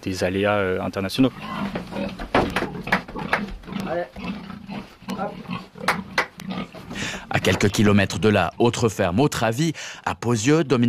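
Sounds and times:
speech: 0.0 - 2.6, 3.9 - 4.3, 7.4 - 10.8
pigs grunting and snorting on a farm: 1.2 - 7.9.

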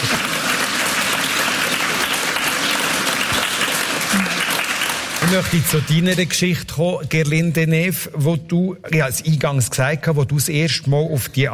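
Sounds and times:
audience applause: 0.0 - 6.1
speech: 5.3 - 11.5.

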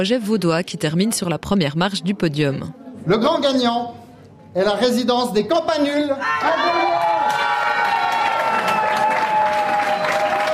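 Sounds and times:
speech: 0.0 - 7.0
participants cheering: 6.2 - 10.5
participants clapping for the winning team at a prize announcement: 6.7 - 10.5.

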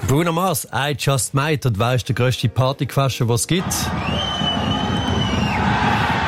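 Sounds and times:
speech: 0.1 - 4.8
crowd cheering: 3.6 - 6.2.

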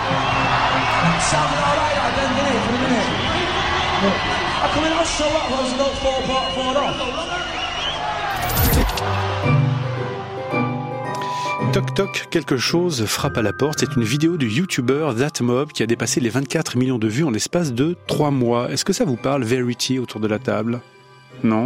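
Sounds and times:
large concert crowd cheering and shouting: 0.0 - 10.5
speech: 4.0 - 7.6, 11.7 - 21.6.

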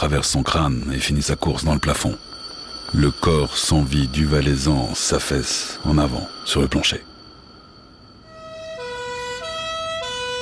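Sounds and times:
speech: 0.0 - 7.1
two-tone ambulance siren: 8.2 - 10.4.

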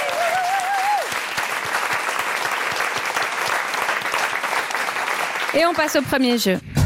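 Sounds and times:
audience applause: 0.0 - 6.3
speech: 5.5 - 6.7.

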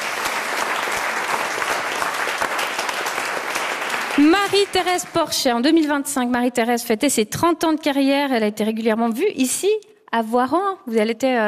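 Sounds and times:
audience applause: 0.0 - 5.3
speech: 4.2 - 11.4.

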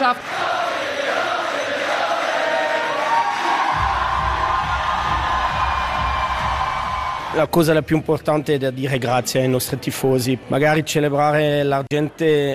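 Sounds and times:
crowd applause and cheering: 0.0 - 7.8
speech: 0.1 - 0.3, 7.4 - 12.5.

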